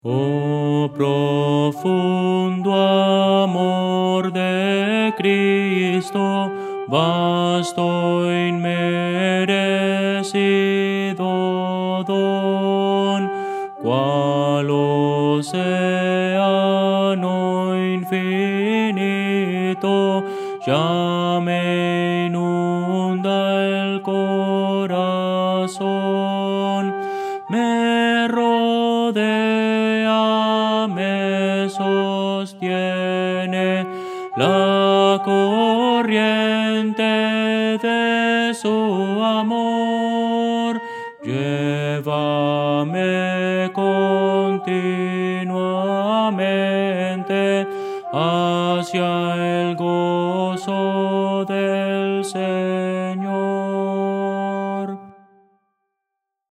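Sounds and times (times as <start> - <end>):
contralto voice: 0.0 - 55.4.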